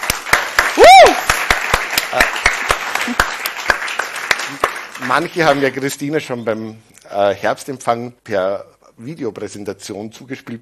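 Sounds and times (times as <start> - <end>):
audience applause: 0.0 - 5.9
speech: 5.1 - 10.6.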